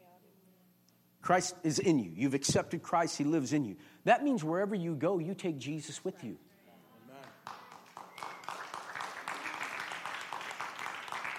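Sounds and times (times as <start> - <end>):
speech: 1.3 - 6.5
audience clapping: 7.2 - 11.3.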